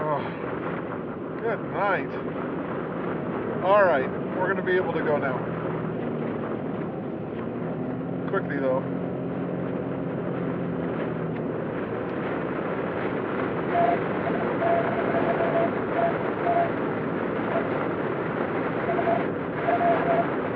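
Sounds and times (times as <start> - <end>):
strong wind whistling against moving vehicle: 0.0 - 20.5
speech: 1.4 - 2.7, 3.6 - 5.6, 8.3 - 9.0.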